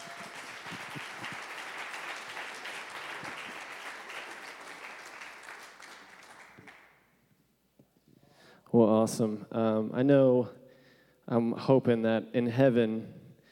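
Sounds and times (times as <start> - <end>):
audience applause welcoming a guest preacher at a morning church service: 0.0 - 6.9
speech: 8.8 - 10.6, 11.3 - 13.2.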